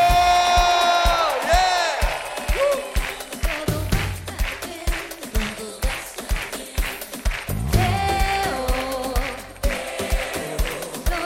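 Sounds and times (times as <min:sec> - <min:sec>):
crowd shouting and cheering for joy: 0:00.0 - 0:04.8, 0:07.4 - 0:11.2.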